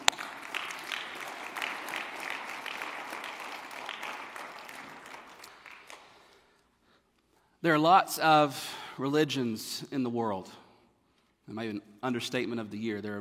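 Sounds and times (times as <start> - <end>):
audience applauding in a large room: 0.0 - 6.4
speech: 7.6 - 10.6, 11.5 - 13.1.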